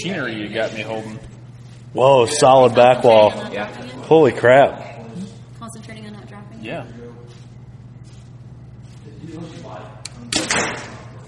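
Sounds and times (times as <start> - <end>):
speech: 0.0 - 1.3, 1.9 - 4.9
arrow shot from a Prime compound bow: 10.3 - 11.0.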